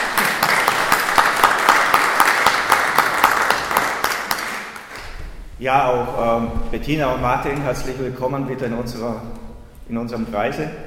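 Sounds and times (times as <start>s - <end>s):
applause: 0.0s - 5.0s
speech: 5.6s - 10.8s.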